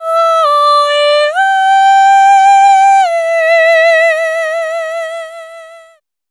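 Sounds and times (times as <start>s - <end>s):
vocal lines in A minor at 70 BPM: 0.0s - 6.0s.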